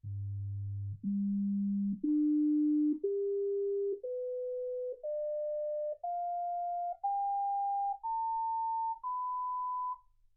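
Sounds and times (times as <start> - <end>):
sine tones: 0.0 - 10.0.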